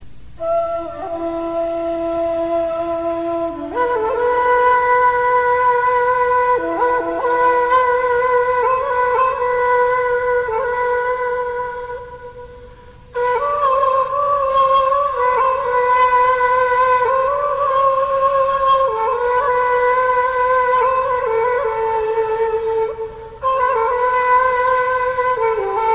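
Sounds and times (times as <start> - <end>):
flute: 0.4 - 25.9.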